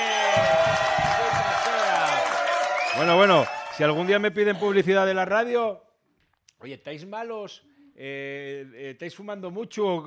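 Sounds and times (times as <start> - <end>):
audience applause: 0.0 - 4.2
speech: 3.0 - 5.8, 6.6 - 10.0.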